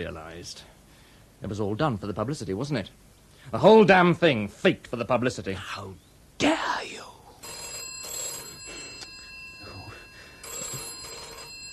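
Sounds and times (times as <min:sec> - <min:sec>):
speech: 0:00.0 - 0:00.8, 0:01.4 - 0:07.1
old-fashioned telephone bell ringing: 0:07.4 - 0:11.7.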